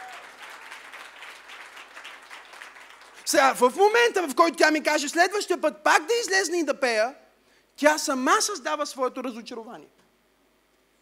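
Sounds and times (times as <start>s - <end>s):
audience clapping: 0.0s - 3.6s
speech: 3.3s - 7.2s, 7.8s - 10.0s.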